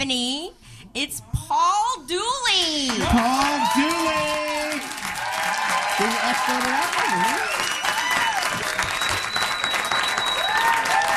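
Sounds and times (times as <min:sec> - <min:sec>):
speech: 0:00.0 - 0:04.6, 0:06.0 - 0:07.7
audience ovation welcoming a guest: 0:02.9 - 0:11.1
whoops: 0:03.0 - 0:11.1
whistle: 0:07.6 - 0:10.9.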